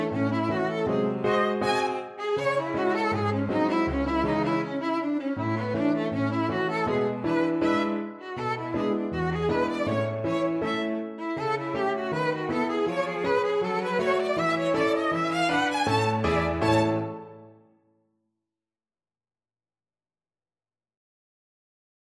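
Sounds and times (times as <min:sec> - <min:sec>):
piano quintet playing pizzicato: 0:00.0 - 0:17.4.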